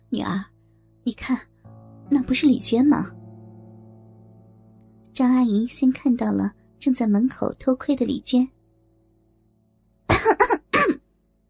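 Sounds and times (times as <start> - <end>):
speech: 0.1 - 1.5, 2.1 - 3.2, 5.2 - 8.6
coughs: 10.1 - 11.1.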